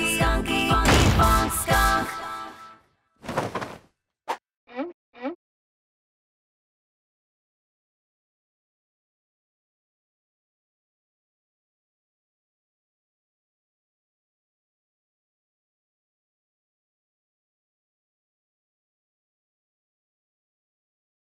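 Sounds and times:
people singing along: 0:00.0 - 0:02.6.

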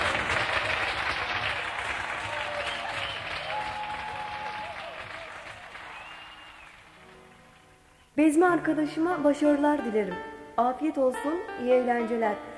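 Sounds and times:
audience applause: 0:00.0 - 0:08.0
speech: 0:08.2 - 0:12.5.

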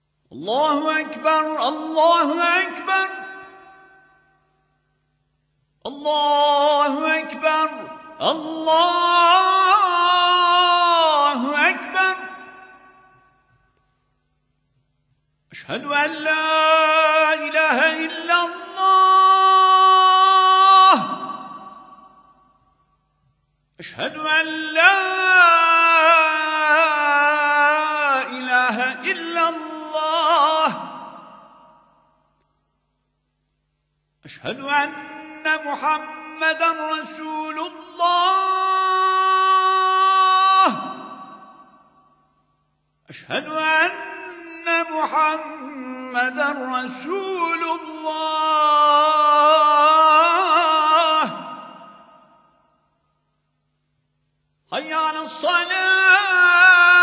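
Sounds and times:
evening call to prayer in segah maqam: 0:00.0 - 0:04.6, 0:05.8 - 0:13.9, 0:15.5 - 0:32.6, 0:34.2 - 0:42.4, 0:43.0 - 0:53.0, 0:54.7 - 0:57.0.

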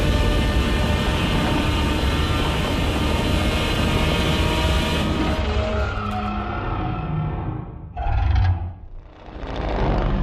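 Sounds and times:
Godzilla roar: 0:00.1 - 0:10.2.

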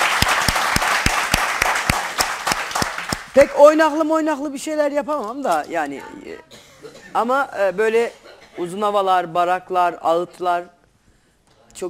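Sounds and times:
audience applause: 0:00.0 - 0:03.3
speech: 0:03.4 - 0:10.8.

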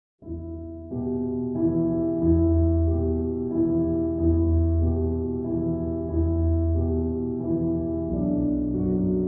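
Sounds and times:
slowed reverb soundtrack music: 0:00.3 - 0:09.2.

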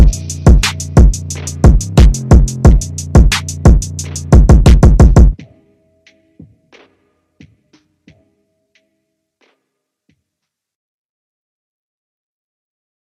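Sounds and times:
slowed phonk music with reverb: 0:00.0 - 0:06.6.

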